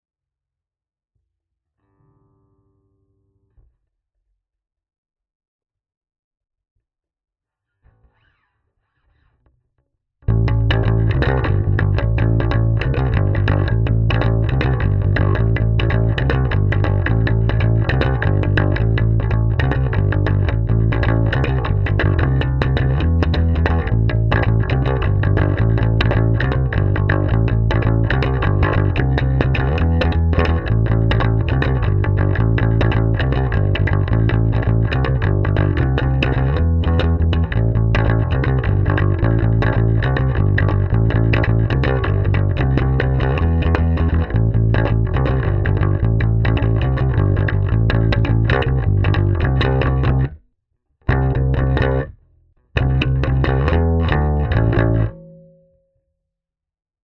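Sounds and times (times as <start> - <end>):
bass: 10.2 - 50.4, 51.0 - 55.6.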